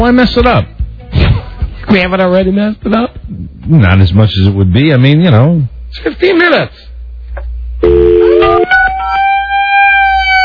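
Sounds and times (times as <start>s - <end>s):
speech: 0.0s - 0.8s, 1.9s - 6.9s, 7.8s - 8.2s
bullhorn siren: 7.8s - 10.4s.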